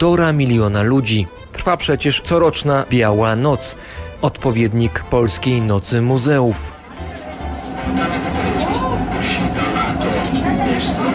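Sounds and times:
speech: 0:00.0 - 0:06.8
Rome metro train rumbling in motion: 0:06.2 - 0:11.1
indistinct voices of passengers murmuring: 0:06.6 - 0:11.1.

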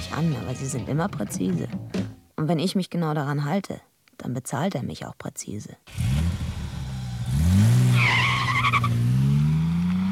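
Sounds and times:
speech: 0:00.1 - 0:06.4
car engine revving pulling away from a parking lot on Free Street: 0:05.9 - 0:10.1
car tires squealing: 0:05.9 - 0:10.1.

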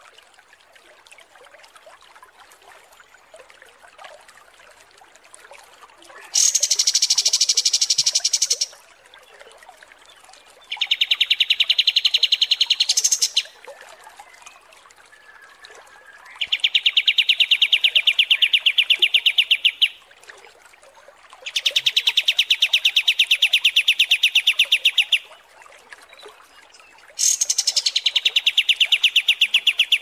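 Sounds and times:
Striated Grassbird kapas tembak song: 0:06.4 - 0:08.8, 0:10.7 - 0:13.6, 0:16.2 - 0:20.0, 0:21.4 - 0:25.3, 0:27.2 - 0:30.0.

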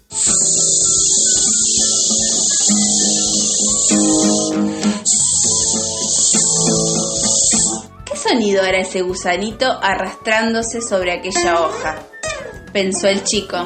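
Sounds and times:
mosquitoes buzzing around: 0:00.0 - 0:07.9, 0:11.2 - 0:13.4
speech: 0:08.4 - 0:12.1, 0:12.7 - 0:13.6.

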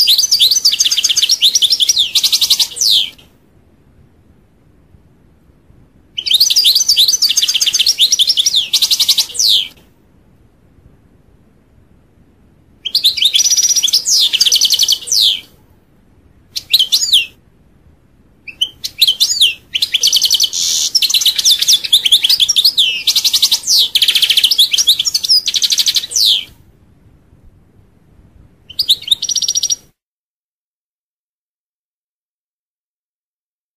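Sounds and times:
European goldfinch twittering song: 0:00.0 - 0:03.2, 0:06.2 - 0:09.7, 0:12.8 - 0:15.4, 0:18.5 - 0:26.5, 0:28.7 - 0:29.8.

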